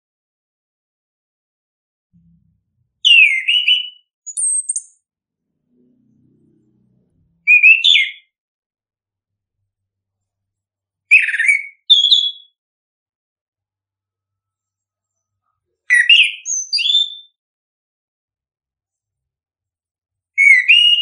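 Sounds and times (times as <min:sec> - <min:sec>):
bird singing chirps and whistles: 0:03.0 - 0:05.0, 0:07.4 - 0:08.3, 0:11.1 - 0:12.6, 0:15.8 - 0:17.4, 0:20.4 - 0:21.0.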